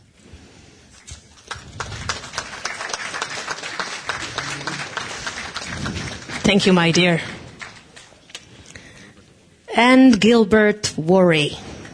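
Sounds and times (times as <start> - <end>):
audience applause: 1.4 - 8.2
speech: 6.5 - 7.4, 9.8 - 11.7.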